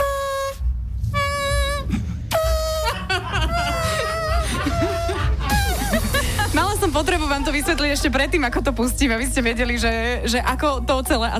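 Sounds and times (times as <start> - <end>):
person imitating a trumpet with their mouth: 0.0 - 5.8
laughter: 2.5 - 8.8
speech: 7.0 - 11.3.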